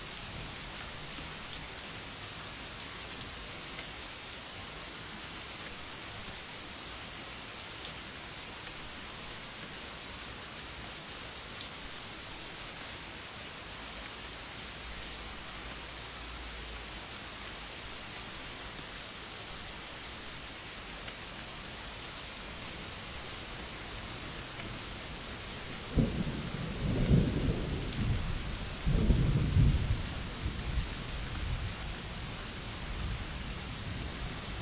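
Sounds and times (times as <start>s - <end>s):
thunderstorm: 0.2s - 1.5s, 24.2s - 34.5s.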